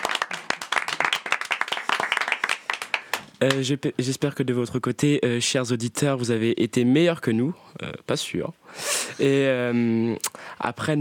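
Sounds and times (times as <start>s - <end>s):
small group of people applauding themselves: 0.0s - 3.9s
speech: 3.4s - 11.0s.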